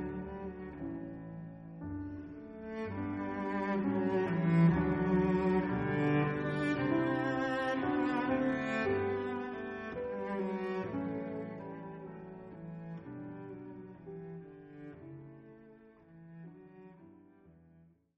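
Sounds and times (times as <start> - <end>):
cello: 0.0 - 17.8
piano: 0.0 - 17.9.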